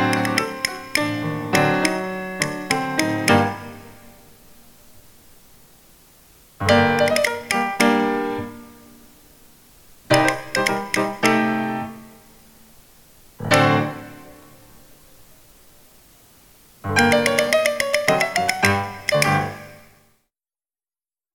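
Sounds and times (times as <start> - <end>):
rhythm response tap: 0.0 - 4.0, 6.6 - 8.6, 10.1 - 12.1, 16.9 - 19.9.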